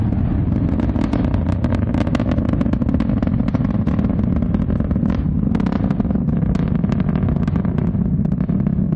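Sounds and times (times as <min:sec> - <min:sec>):
Ariane 5 rocket launch crackling roar: 0:00.0 - 0:08.9.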